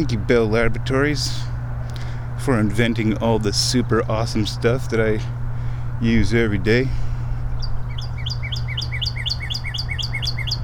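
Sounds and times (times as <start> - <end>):
speech: 0.0 - 1.5, 2.4 - 5.4, 6.0 - 7.0
bird chirping in a tree: 7.4 - 10.6.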